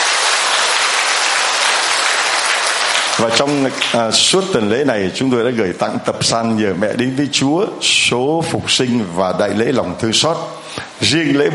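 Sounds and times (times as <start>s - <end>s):
loud applause: 0.0s - 4.5s
speech: 3.2s - 11.5s.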